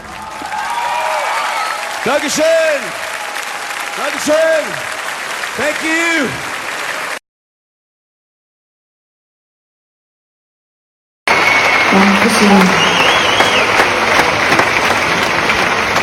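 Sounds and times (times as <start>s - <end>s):
audience applause: 0.0s - 7.2s, 11.3s - 16.0s
speech: 2.0s - 3.1s, 4.0s - 5.0s, 5.6s - 6.5s.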